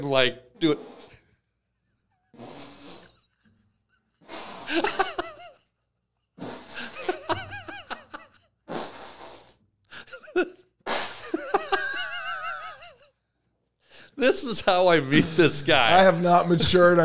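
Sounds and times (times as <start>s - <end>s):
speech: 0.0s - 1.1s, 14.2s - 17.0s
hand-made armpit fart noises: 0.6s - 1.3s, 2.3s - 3.5s, 4.2s - 5.3s, 6.4s - 7.5s, 8.6s - 9.8s, 10.8s - 12.5s
people laughing: 4.7s - 5.7s, 6.8s - 8.4s, 11.2s - 13.0s, 14.2s - 17.0s.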